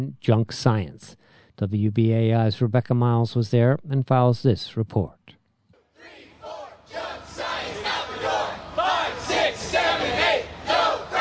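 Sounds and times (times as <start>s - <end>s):
speech: 0.0s - 5.3s
student protest rally crowd chanting: 6.0s - 11.2s.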